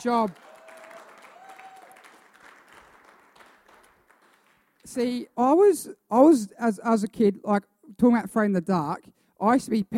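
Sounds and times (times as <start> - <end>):
speech: 0.0 - 0.5, 4.9 - 9.9
audience applause: 0.0 - 4.8.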